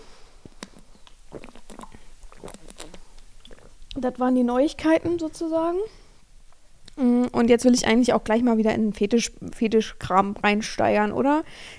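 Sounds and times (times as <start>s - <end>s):
person sipping water: 0.4s - 4.0s
speech: 4.0s - 6.0s, 7.0s - 11.7s.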